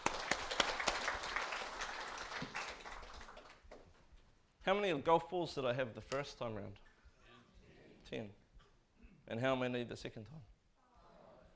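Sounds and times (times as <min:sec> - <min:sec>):
round of applause from a class: 0:00.0 - 0:04.0
speech: 0:04.7 - 0:06.9, 0:08.1 - 0:08.4, 0:09.3 - 0:10.5.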